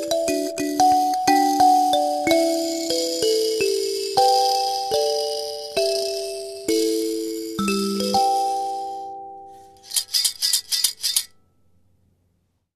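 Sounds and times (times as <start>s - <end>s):
kalimba in G with buzzers: 0.0s - 9.5s.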